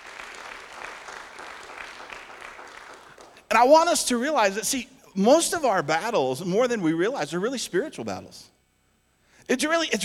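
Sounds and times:
audience applause: 0:00.0 - 0:03.4
speech: 0:03.6 - 0:08.5, 0:09.5 - 0:10.0.

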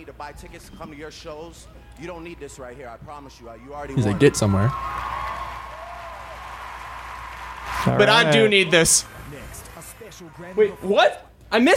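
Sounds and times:
speech: 0:00.0 - 0:05.2, 0:07.8 - 0:11.7
audience clapping: 0:04.0 - 0:11.0.

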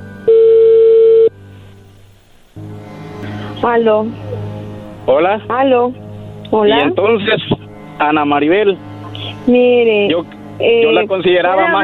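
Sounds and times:
incoming telephone call electronic tone: 0:00.2 - 0:01.4
speech: 0:03.6 - 0:04.2, 0:05.1 - 0:08.9, 0:09.5 - 0:11.8.

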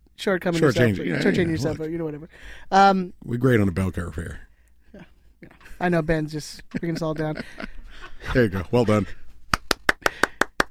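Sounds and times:
speech: 0:00.2 - 0:05.1, 0:05.8 - 0:09.2
applause: 0:09.5 - 0:10.6.

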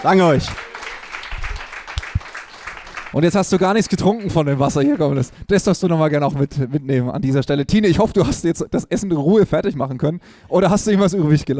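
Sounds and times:
speech: 0:00.0 - 0:00.7, 0:03.1 - 0:11.5
audience applause: 0:00.0 - 0:05.3.

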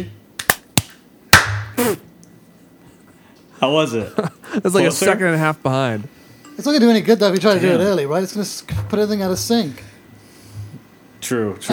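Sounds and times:
hand clapping: 0:00.4 - 0:02.0
speech: 0:03.6 - 0:09.9, 0:11.2 - 0:11.7.

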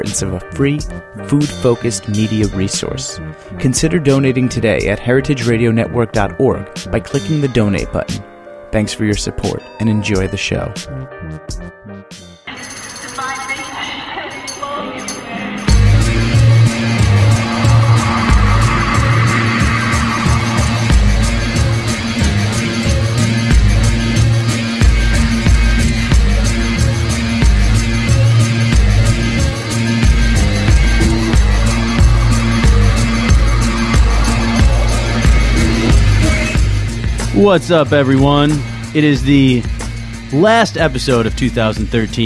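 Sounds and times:
speech: 0:00.0 - 0:11.7, 0:37.4 - 0:42.2
instrumental podcast interlude intro music with driving beat and heavy bass: 0:15.0 - 0:42.1.

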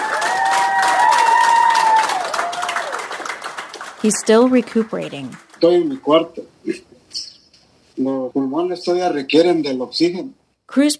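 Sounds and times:
whooping by hospital staff: 0:00.0 - 0:03.4
hospital nurses and staff clapping and cheering for a discharged patient: 0:00.0 - 0:06.1
speech: 0:04.0 - 0:06.9, 0:08.0 - 0:10.9.

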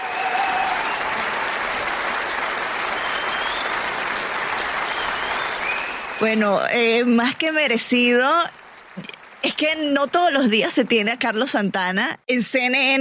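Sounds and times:
applause: 0:00.0 - 0:11.5
speech: 0:06.2 - 0:08.6, 0:09.4 - 0:12.9.

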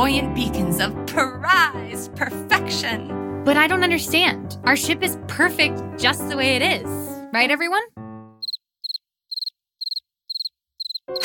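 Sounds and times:
speech: 0:00.0 - 0:08.0
crickets chirping: 0:08.4 - 0:11.2.

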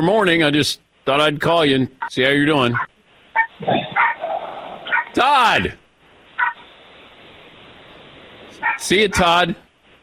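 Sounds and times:
speech: 0:00.0 - 0:02.9, 0:05.2 - 0:05.8, 0:08.8 - 0:09.6
small dog yapping: 0:03.4 - 0:05.2.

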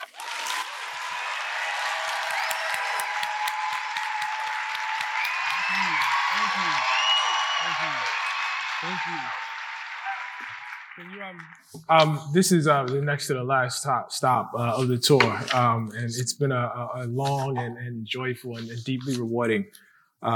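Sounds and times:
audience applause welcoming author Ta-Nehisi Coates at RJ Julia bookstore: 0:00.0 - 0:11.8
speech: 0:08.8 - 0:09.4, 0:11.0 - 0:20.3.

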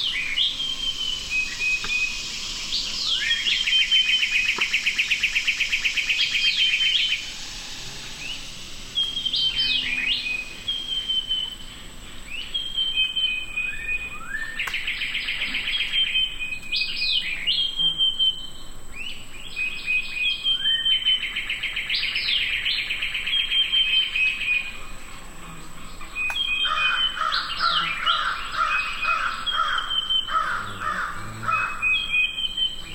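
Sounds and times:
low amphibian calls: 0:00.0 - 0:13.2, 0:22.8 - 0:32.9
dawn chorus birds singing at Big Cypress Preserve: 0:00.0 - 0:32.9
steady insect buzz: 0:00.0 - 0:32.9.

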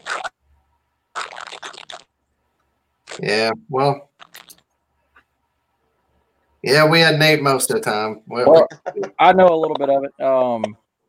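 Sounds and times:
person chewing crunchy food: 0:01.1 - 0:02.1
speech: 0:03.2 - 0:04.1, 0:06.7 - 0:10.8.

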